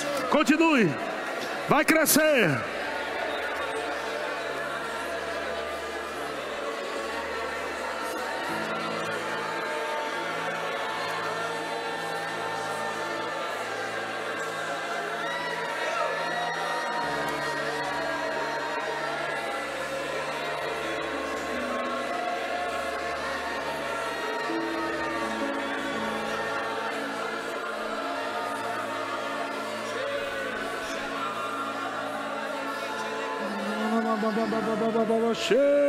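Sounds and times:
dense crowd of many voices murmuring: 0:00.0 - 0:35.8
speech: 0:00.3 - 0:01.1, 0:01.7 - 0:02.7, 0:34.6 - 0:35.8
laughter: 0:02.1 - 0:35.8.

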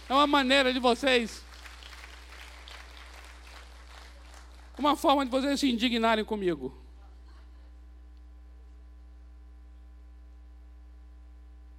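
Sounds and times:
audience applause: 0:00.0 - 0:05.2
speech: 0:00.1 - 0:01.4, 0:04.8 - 0:06.8.

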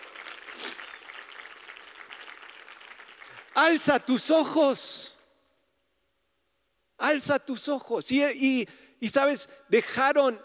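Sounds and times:
audience clapping: 0:00.0 - 0:04.1
speech: 0:03.6 - 0:05.1, 0:07.0 - 0:10.4.

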